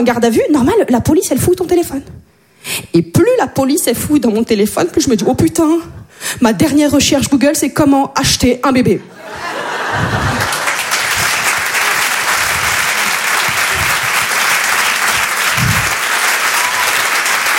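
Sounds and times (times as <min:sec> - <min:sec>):
speech: 0:00.0 - 0:10.1
scattered laughter: 0:09.3 - 0:10.7
audience applause for a comedian at a comedy club show: 0:09.8 - 0:17.5
low thumps: 0:15.5 - 0:16.0.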